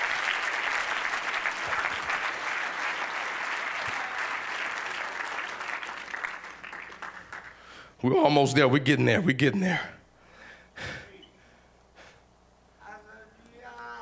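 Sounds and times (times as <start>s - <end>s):
audience clapping hands: 0.0s - 7.9s
speech: 8.0s - 10.0s.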